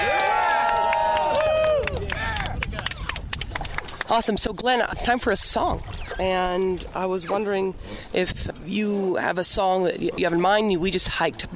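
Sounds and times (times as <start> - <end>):
group cheering on a raft: 0.0 - 3.2
speech: 4.1 - 11.5.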